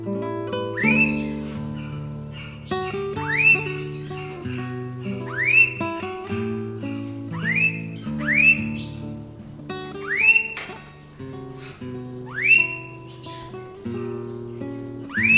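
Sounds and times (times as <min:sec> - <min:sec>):
blue-faced honeyeater whistled calls: 0:00.4 - 0:15.3.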